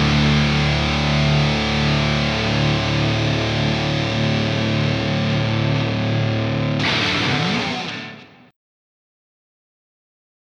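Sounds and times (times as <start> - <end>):
hard rock music: 0.0 - 8.5.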